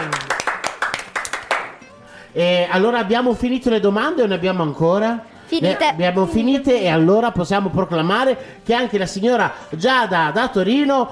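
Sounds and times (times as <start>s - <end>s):
audience applause: 0.0s - 1.8s
speech: 2.4s - 11.1s.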